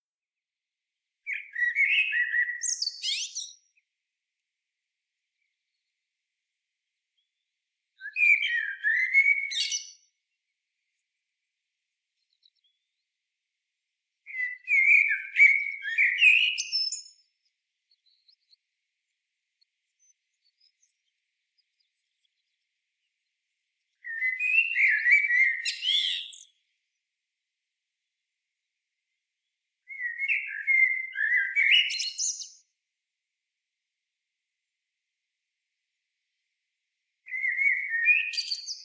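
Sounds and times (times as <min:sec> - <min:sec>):
common blackbird singing: 0:01.3 - 0:03.8, 0:08.0 - 0:10.2, 0:14.3 - 0:18.8, 0:19.8 - 0:23.1, 0:23.9 - 0:26.7, 0:29.9 - 0:32.7, 0:37.3 - 0:38.8.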